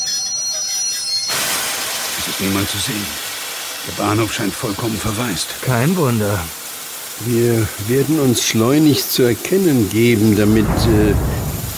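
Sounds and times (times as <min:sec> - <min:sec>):
train wheels squealing arriving at Prague main station: 0:00.0 - 0:01.4
speech: 0:02.2 - 0:06.6, 0:07.2 - 0:11.5
train rumble: 0:10.2 - 0:11.7.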